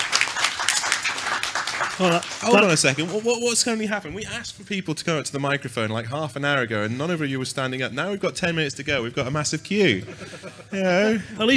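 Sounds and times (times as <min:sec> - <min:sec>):
audience applause: 0:00.0 - 0:03.8
speech: 0:02.0 - 0:11.5
laughter: 0:09.8 - 0:11.5.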